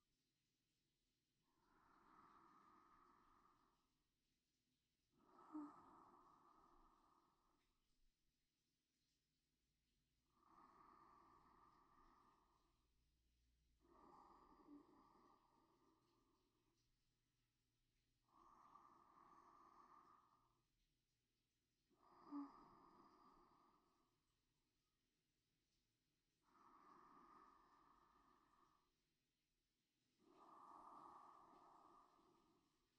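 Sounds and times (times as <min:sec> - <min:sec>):
sleep breathing: 0:01.4 - 0:04.1, 0:05.1 - 0:08.0, 0:10.2 - 0:17.0, 0:18.2 - 0:20.8, 0:21.8 - 0:24.6, 0:26.3 - 0:29.1, 0:30.1 - 0:32.9.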